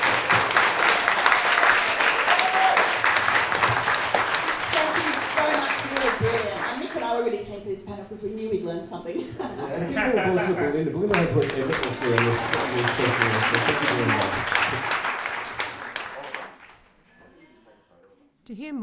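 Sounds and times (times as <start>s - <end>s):
audience applause for panel: 0.0s - 7.4s, 9.8s - 16.9s
laughter: 0.0s - 18.2s
speech: 7.9s - 14.6s, 18.5s - 18.8s.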